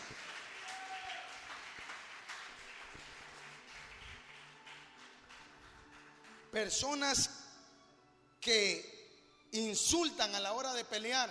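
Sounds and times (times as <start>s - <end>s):
audience clapping: 0.0s - 7.1s
speech: 6.5s - 7.4s, 8.4s - 11.2s.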